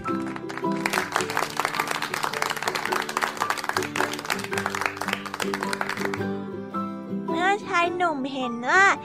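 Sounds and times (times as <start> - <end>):
children clapping their hands: 0.0 - 6.4
speech: 7.8 - 9.0.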